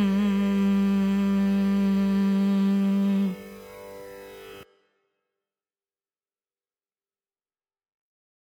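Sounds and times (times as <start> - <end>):
carnatic raga music: 0.0 - 5.1.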